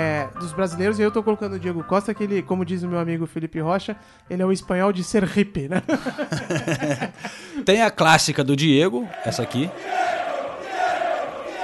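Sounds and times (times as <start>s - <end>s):
speech: 0.3s - 10.1s
laughter: 5.7s - 7.7s
football fans chanting: 9.0s - 11.6s.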